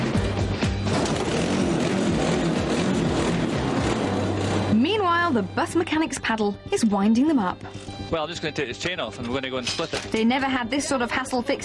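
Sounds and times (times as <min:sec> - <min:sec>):
amphibious bike engine revving: 0:00.8 - 0:04.8
speech: 0:05.3 - 0:11.6.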